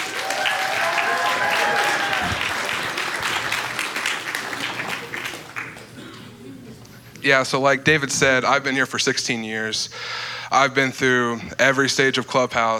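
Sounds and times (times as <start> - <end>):
audience applause welcoming a speaker to the stage: 0.0 - 6.1
speech: 7.2 - 12.7.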